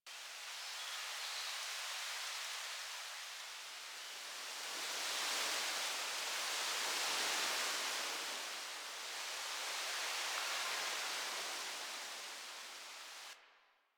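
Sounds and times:
wind in autumn trees: 0:00.1 - 0:13.4.

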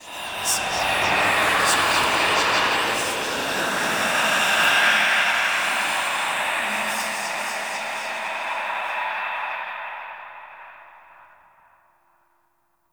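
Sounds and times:
whispers among temple pillars: 0:00.0 - 0:10.4.

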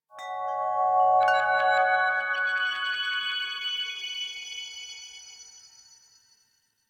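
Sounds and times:
chimes: 0:00.1 - 0:06.8.

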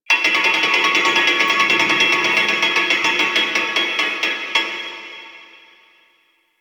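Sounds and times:
grid music loop: 0:00.3 - 0:04.5.

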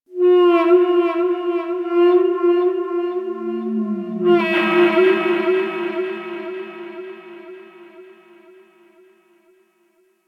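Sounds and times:
ocean whale bellowing: 0:00.2 - 0:08.2.

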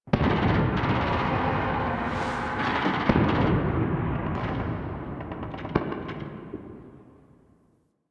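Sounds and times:
distant explosions: 0:00.1 - 0:06.1.

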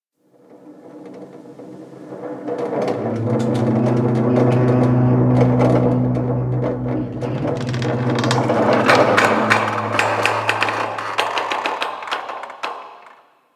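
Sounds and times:
high metal creak of a ship: 0:02.9 - 0:13.1.

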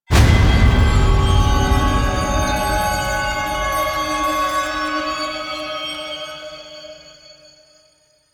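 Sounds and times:
chimes: 0:00.1 - 0:08.3.

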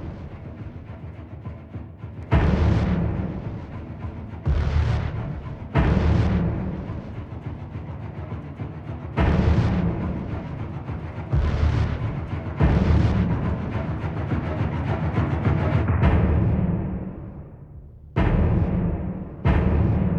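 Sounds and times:
combat percussion music: 0:02.3 - 0:07.7, 0:09.2 - 0:14.1, 0:15.4 - 0:20.1.

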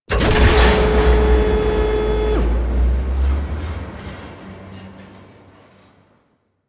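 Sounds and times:
elevator starting: 0:00.1 - 0:02.6.

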